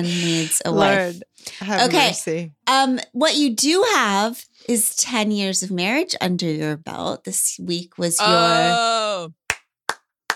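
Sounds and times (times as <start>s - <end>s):
speech: 0.0s - 9.4s
crowd clapping: 9.5s - 10.3s.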